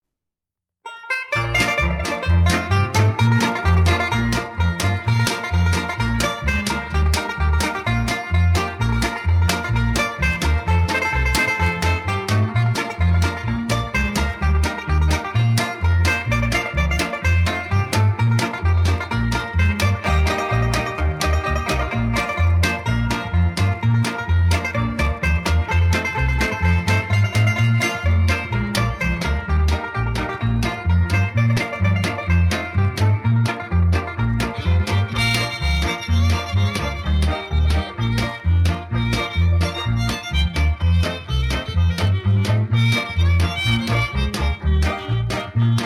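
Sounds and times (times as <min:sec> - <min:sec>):
banjo: 0:00.8 - 0:45.8.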